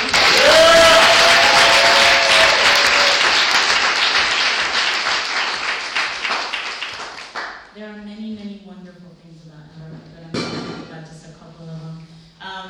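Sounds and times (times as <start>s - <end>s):
crowd cheering: 0.0s - 7.5s.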